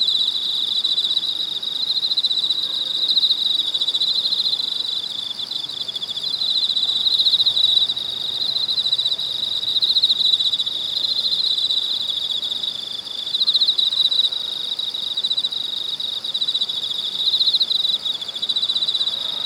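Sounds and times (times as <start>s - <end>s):
cicadas buzzing: 0.0s - 19.4s.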